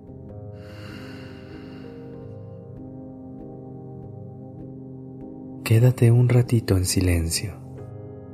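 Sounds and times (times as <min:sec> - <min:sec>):
slow breathing, inhale and exhale: 0:00.6 - 0:02.8
speech: 0:05.7 - 0:07.7.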